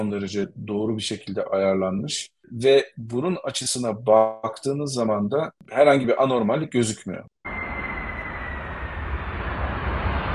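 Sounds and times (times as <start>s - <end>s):
speech: 0.0s - 7.3s
airliner engines powering up during landing approach: 7.5s - 10.3s.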